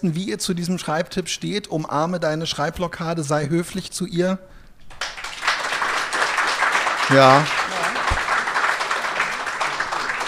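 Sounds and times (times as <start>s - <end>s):
speech: 0.0s - 5.1s, 7.1s - 7.7s
polite audience applause: 5.0s - 10.2s.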